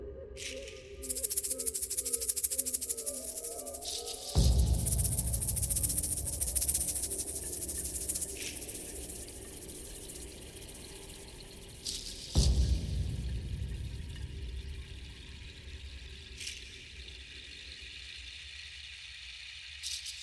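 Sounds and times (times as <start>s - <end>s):
drumming: 1.1s - 14.9s.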